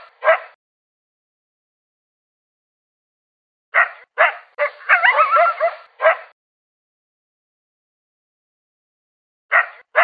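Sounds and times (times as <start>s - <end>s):
coyote barking and yelping: 0.0s - 0.6s, 3.8s - 6.3s, 9.5s - 10.0s.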